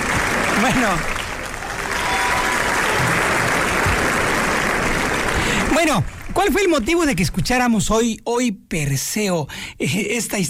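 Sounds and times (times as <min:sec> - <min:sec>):
audience applause: 0:00.0 - 0:07.0
speech: 0:00.6 - 0:01.1, 0:05.7 - 0:10.4.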